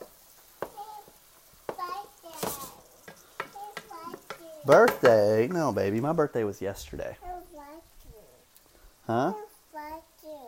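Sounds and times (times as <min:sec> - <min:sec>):
stirring ground beef in a pan: 0:00.0 - 0:06.1
speech: 0:04.7 - 0:07.3, 0:09.1 - 0:09.4.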